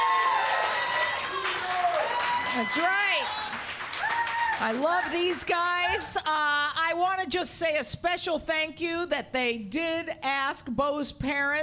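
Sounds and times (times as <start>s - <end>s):
crowd applauding and cheering: 0.0s - 6.2s
speech: 2.6s - 3.4s, 4.6s - 11.6s.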